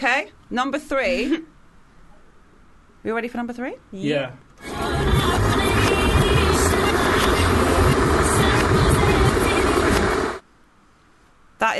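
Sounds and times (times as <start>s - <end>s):
speech: 0.0s - 1.5s, 3.0s - 5.2s
loud kettle boiling: 4.6s - 10.4s.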